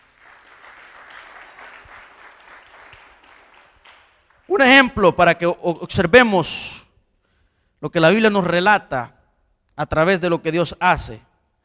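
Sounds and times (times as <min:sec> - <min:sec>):
audience applause: 0:00.0 - 0:04.5
speech: 0:04.5 - 0:06.8, 0:07.8 - 0:09.2, 0:09.8 - 0:11.3.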